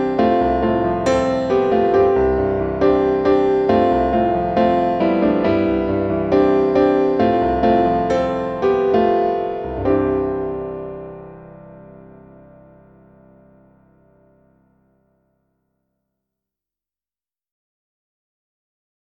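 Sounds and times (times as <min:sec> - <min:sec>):
piano music: 0:00.0 - 0:15.1.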